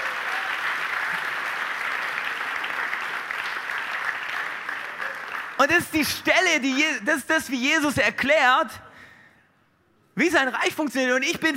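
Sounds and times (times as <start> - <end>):
applause: 0.0 - 6.2
speech: 5.6 - 8.8, 10.2 - 11.5.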